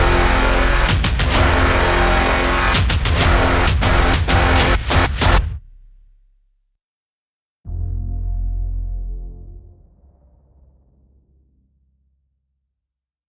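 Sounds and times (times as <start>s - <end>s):
scary suspense music: 0.0s - 5.6s, 7.7s - 12.2s.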